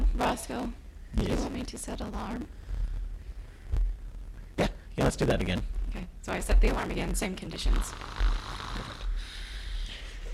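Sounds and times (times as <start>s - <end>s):
steady hiss: 0.0s - 10.3s
speech: 0.3s - 2.7s, 5.0s - 8.9s
man snoring: 7.8s - 9.2s.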